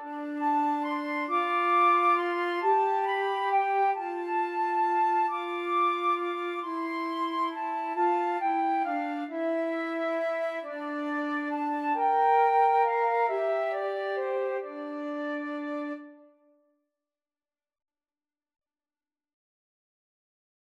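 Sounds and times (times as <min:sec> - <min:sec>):
flute trio playing: 0:00.0 - 0:16.3.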